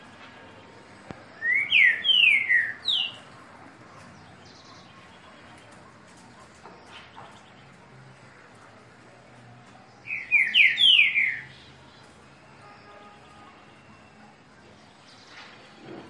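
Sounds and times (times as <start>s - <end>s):
green-winged saltator singing downslurred whistles: 1.3s - 3.2s, 10.1s - 11.6s.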